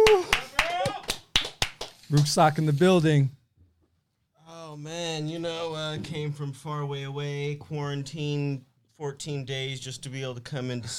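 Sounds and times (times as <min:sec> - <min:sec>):
audience applause: 0:00.0 - 0:02.3
speech: 0:02.1 - 0:03.4, 0:04.8 - 0:10.9.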